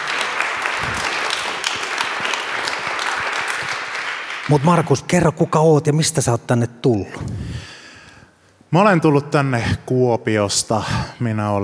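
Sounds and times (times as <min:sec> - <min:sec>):
small round of applause: 0:00.0 - 0:05.6
speech: 0:04.5 - 0:07.4, 0:08.7 - 0:11.6.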